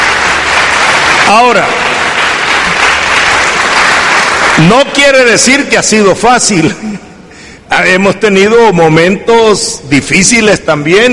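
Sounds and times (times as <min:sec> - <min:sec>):
audience applause: 0:00.0 - 0:05.0
speech: 0:01.3 - 0:01.9, 0:04.6 - 0:07.1, 0:07.8 - 0:11.1.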